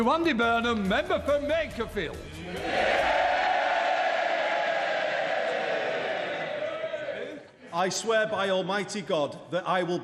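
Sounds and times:
speech: 0.0s - 3.2s, 7.7s - 10.0s
parliament members cheering and shouting: 2.4s - 7.5s.

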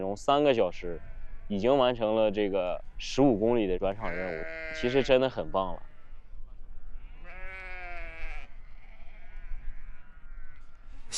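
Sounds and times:
speech: 0.0s - 5.9s
sheep from a flock bleating at a summer pasture pen: 3.9s - 5.5s, 7.1s - 10.8s.

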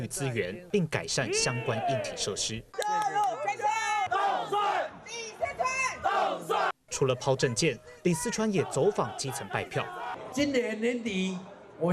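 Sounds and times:
speech: 0.0s - 3.2s, 7.0s - 11.9s
crowd cheering for a youth baseball team at a political campaign event: 2.8s - 6.8s, 8.2s - 11.9s.

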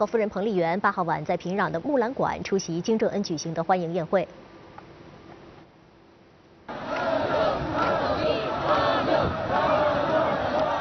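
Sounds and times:
speech: 0.0s - 4.5s
crowds in national costume in Pyongyang cheering a passing motorcade: 6.7s - 10.7s.

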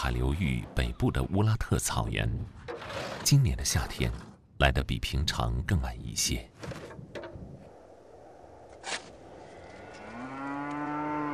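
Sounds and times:
speech: 0.0s - 6.9s
brief rustle: 8.7s - 11.3s
thin bony cattle lowing on the Urad grassland: 9.6s - 11.3s.

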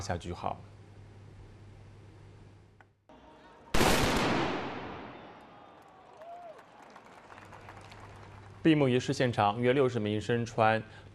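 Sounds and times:
speech: 0.0s - 0.8s, 8.6s - 11.1s
black powder gun salute shot: 3.8s - 5.9s.

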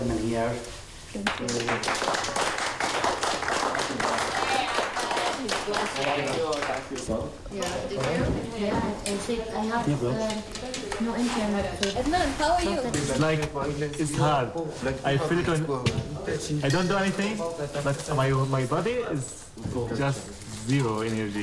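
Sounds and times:
speech: 0.4s - 2.6s, 3.9s - 21.4s
people clapping: 1.2s - 8.4s.

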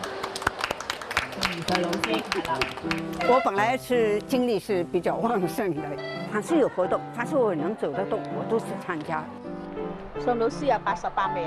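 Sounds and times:
small audience clapping: 0.0s - 3.7s
speech: 1.6s - 11.4s.

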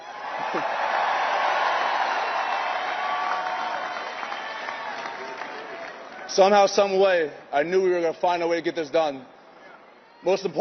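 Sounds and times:
fans cheering: 0.0s - 6.9s
speech: 0.5s - 0.8s, 6.4s - 9.3s, 10.2s - 10.5s.

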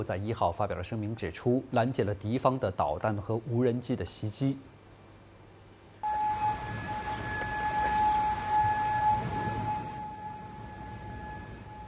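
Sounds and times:
speech: 0.0s - 4.7s
air raid warning siren in Kuwait: 6.0s - 11.8s.

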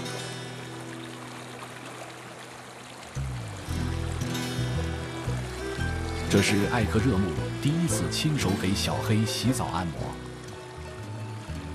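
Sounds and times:
small stream flowing and trickling: 0.0s - 11.7s
speech: 6.3s - 10.2s.

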